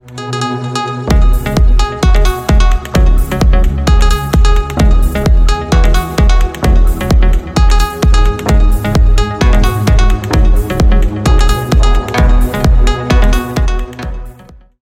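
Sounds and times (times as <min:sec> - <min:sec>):
trance ringtone: 0:00.1 - 0:14.6.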